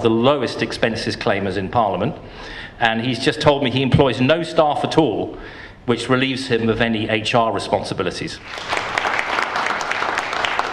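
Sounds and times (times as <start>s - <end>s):
speech: 0.0s - 9.0s
audience applause in a village hall: 8.4s - 10.7s.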